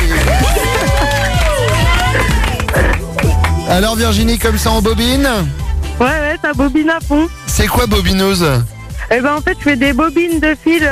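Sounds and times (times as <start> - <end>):
crowd applauding: 0.0 - 4.7
speech: 3.8 - 10.9.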